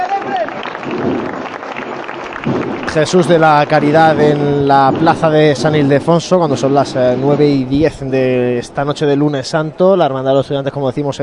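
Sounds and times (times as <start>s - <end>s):
crowd applauding a Holy Week procession outside the Basilica of San Ildefonso in Jaén: 0.0s - 5.7s
speech: 2.9s - 11.2s.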